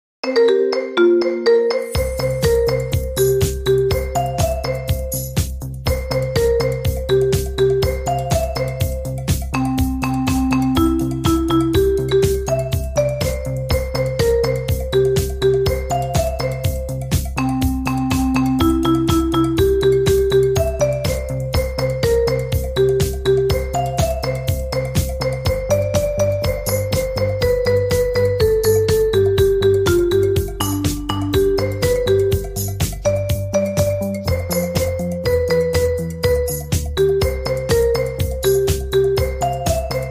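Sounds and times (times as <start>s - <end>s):
marimba: 0.2s - 40.0s.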